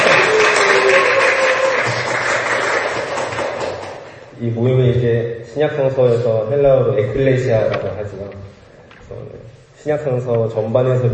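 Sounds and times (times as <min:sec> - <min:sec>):
applause: 0:00.0 - 0:04.2
speech: 0:04.4 - 0:11.1.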